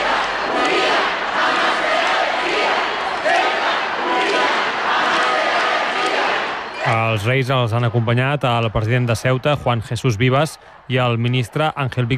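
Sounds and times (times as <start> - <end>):
crowd shouting slogans: 0.0 - 7.0
crowd applauding: 0.0 - 12.1
speech: 7.1 - 12.1.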